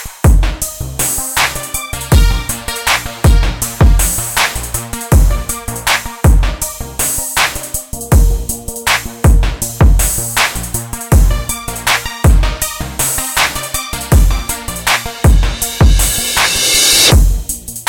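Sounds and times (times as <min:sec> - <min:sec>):
electronic night music ident: 0:00.3 - 0:17.5.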